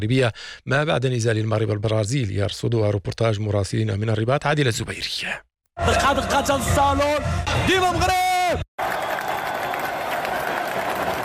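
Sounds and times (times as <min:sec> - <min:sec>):
speech: 0:00.0 - 0:08.6
Moroccan fans applauding in Prince Moulay Hassan stadium, Rabat, after Morocco vs Brazil: 0:08.8 - 0:11.2.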